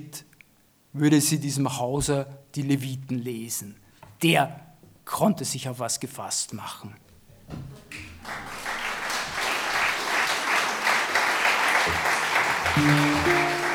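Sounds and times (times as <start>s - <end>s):
speech: 0.0s - 0.3s, 1.0s - 8.1s, 12.8s - 13.4s
audience clapping: 8.0s - 13.7s
low tones: 11.9s - 13.7s.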